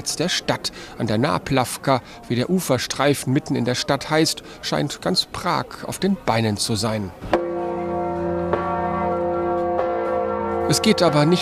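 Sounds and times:
speech: 0:00.0 - 0:07.4, 0:10.7 - 0:11.3
large bell ringing on a river pontoon: 0:07.4 - 0:11.3.

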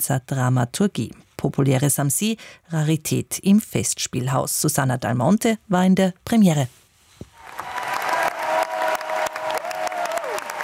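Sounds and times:
speech: 0:00.0 - 0:06.8
high cheer or whistle: 0:07.4 - 0:10.6
opera audience clapping: 0:07.4 - 0:10.6.

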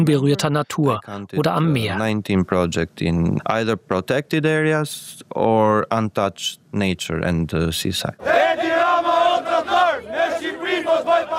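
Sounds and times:
speech: 0:00.0 - 0:08.7
protesters chanting slogans: 0:08.2 - 0:11.3.

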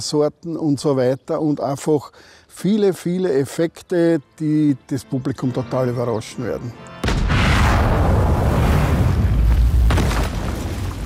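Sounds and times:
speech: 0:00.0 - 0:06.9
stage cannon shot: 0:07.0 - 0:10.9
dust explosion destroying angel statue: 0:07.0 - 0:11.0.

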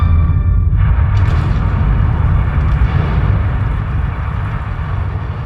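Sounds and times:
simulated volcanic eruption rumbling: 0:00.2 - 0:05.4
simulated volcanic eruption banging: 0:00.7 - 0:05.4.

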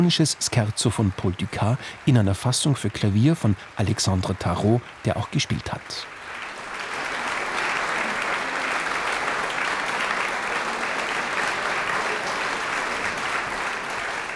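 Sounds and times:
speech: 0:00.0 - 0:06.2
large indoor concert audience applauding enthusiastically: 0:00.0 - 0:14.3
laughter: 0:00.1 - 0:14.3.

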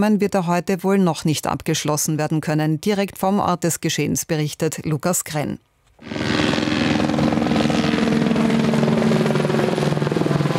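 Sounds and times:
speech: 0:00.0 - 0:06.4
firefighting helicopters flying overhead: 0:06.0 - 0:10.5.

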